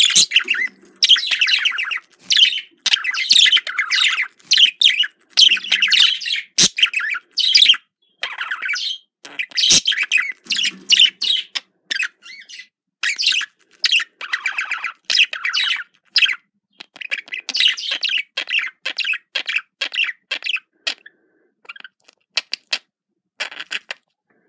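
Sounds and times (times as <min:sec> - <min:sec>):
budgerigar chattering: 0:00.0 - 0:21.1.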